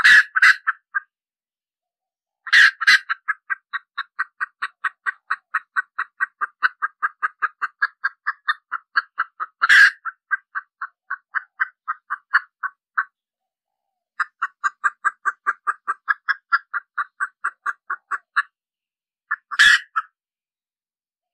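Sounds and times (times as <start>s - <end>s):
red junglefowl hen cackling: 0.0s - 1.1s, 2.4s - 13.1s, 14.2s - 18.6s, 19.3s - 20.2s.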